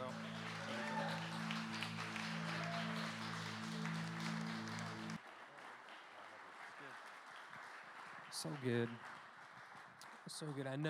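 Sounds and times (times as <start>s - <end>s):
audience round of applause: 0.0s - 10.8s
speech: 8.4s - 9.2s, 10.3s - 10.8s.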